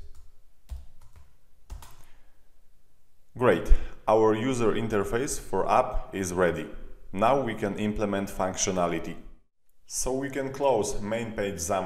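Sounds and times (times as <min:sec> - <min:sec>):
typing on a computer keyboard: 0:00.0 - 0:02.1
speech: 0:03.4 - 0:09.3, 0:09.9 - 0:11.8.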